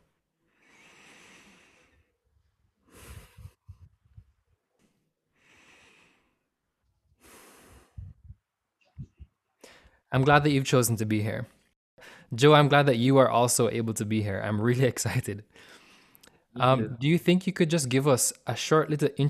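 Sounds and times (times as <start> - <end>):
slow deep breaths taken during a guided pause: 0.4 - 8.5, 9.6 - 10.1, 12.0 - 12.3, 15.5 - 16.6
speech: 10.1 - 11.6, 12.3 - 15.8, 16.5 - 19.2.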